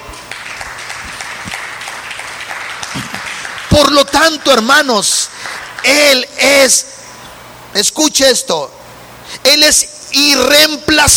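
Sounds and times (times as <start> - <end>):
audience applause: 0.3 - 6.2
speech: 3.8 - 6.9, 7.7 - 8.8, 9.4 - 11.1.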